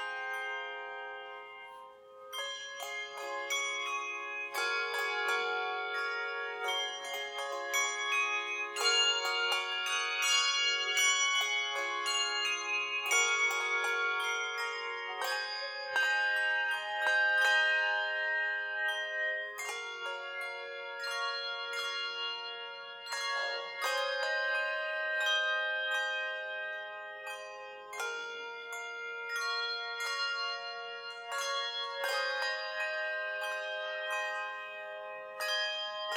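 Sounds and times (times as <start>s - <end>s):
carillon bells: 0.0s - 36.1s.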